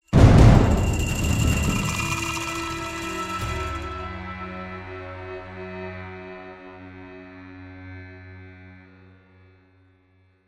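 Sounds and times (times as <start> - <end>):
desert score sting: 0.1 - 4.1.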